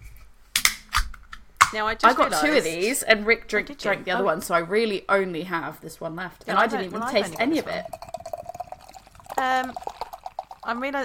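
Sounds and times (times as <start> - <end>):
speech: 1.7 - 8.0, 9.4 - 9.9, 10.6 - 11.0
beer pouring into a glass: 6.4 - 11.0.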